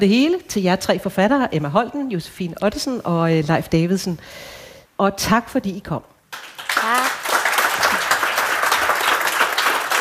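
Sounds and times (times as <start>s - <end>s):
speech: 0.0s - 6.4s
audience applause in Bogense: 6.4s - 9.9s.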